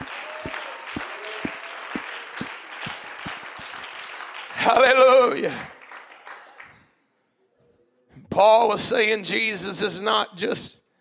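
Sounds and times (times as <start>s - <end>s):
audience clapping hands: 0.0s - 6.9s
speech: 4.6s - 5.7s, 8.4s - 10.8s.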